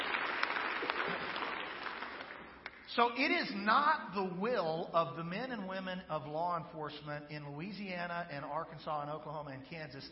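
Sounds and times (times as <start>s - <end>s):
audience clapping: 0.0s - 3.2s
speech: 3.0s - 10.0s.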